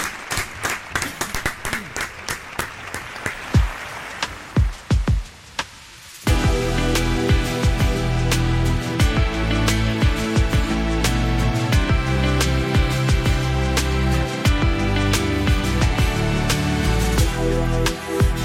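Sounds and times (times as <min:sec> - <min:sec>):
audience applause: 0:00.0 - 0:04.8
music: 0:03.5 - 0:18.4.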